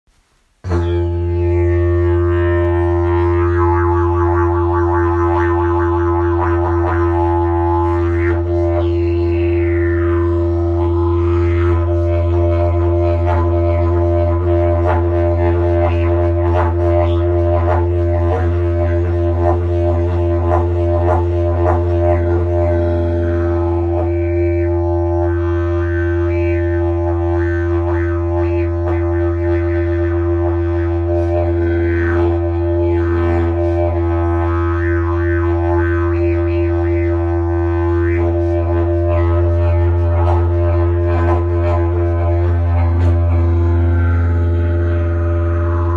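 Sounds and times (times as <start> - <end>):
didgeridoo: 0.6 - 45.9.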